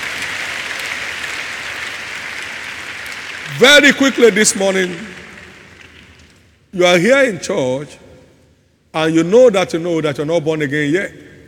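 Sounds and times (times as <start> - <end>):
audience clapping: 0.0 - 6.6
speech: 3.5 - 5.2, 6.8 - 8.0, 8.9 - 11.3.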